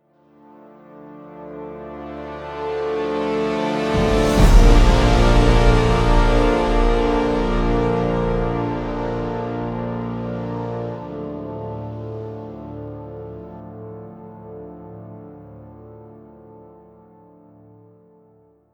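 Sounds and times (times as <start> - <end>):
music stinger: 3.0 - 11.0.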